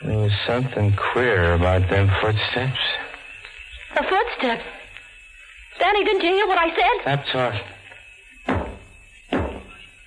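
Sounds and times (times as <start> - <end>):
speech: 0.0 - 3.0, 4.4 - 4.8, 5.9 - 7.8
banging on a wall: 8.5 - 9.7.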